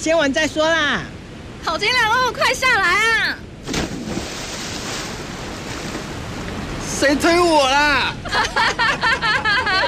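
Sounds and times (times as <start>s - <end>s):
speech: 0.0s - 3.5s, 6.9s - 9.5s
waves washing: 0.8s - 9.8s
water splashing at a deep swimming spot where people jump in: 3.6s - 7.2s
laughter: 8.2s - 9.8s.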